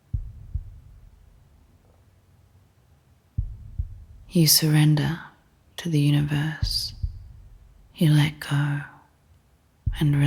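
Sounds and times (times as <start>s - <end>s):
person's own heartbeat heard with ears under water: 0.0s - 1.8s, 3.4s - 4.7s, 6.5s - 8.0s, 9.9s - 10.2s
low rumble: 0.0s - 2.0s, 3.4s - 5.1s, 6.6s - 8.1s, 9.8s - 10.2s
speech: 4.3s - 7.0s, 8.0s - 8.9s, 10.0s - 10.2s.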